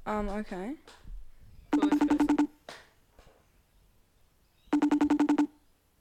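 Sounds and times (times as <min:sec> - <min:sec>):
phone ringtone from incoming call: 0:01.7 - 0:02.5, 0:04.7 - 0:05.5.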